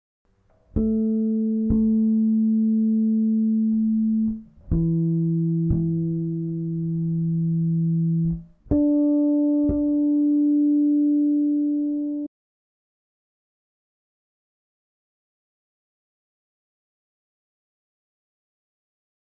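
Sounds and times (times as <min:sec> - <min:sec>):
instrument tuning with flageolet harmonics: 0:00.5 - 0:12.3.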